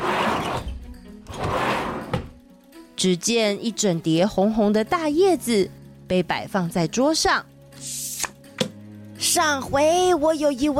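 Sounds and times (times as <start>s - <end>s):
cabinet drawer being pulled open: 0.0s - 2.4s
speech: 3.0s - 8.0s, 9.3s - 10.7s.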